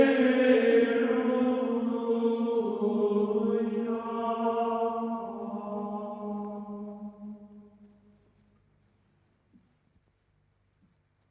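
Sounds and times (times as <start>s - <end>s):
Gregorian chant: 0.0s - 8.0s.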